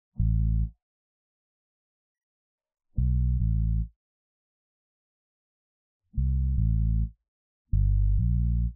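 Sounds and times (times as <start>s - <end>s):
bass: 0.0s - 0.8s, 3.0s - 4.0s, 6.1s - 8.7s.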